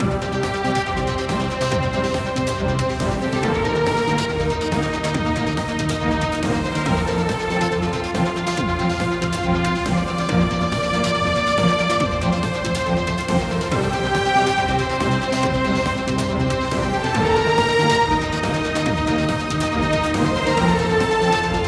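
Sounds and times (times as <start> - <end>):
battle music loop: 0.0 - 21.6.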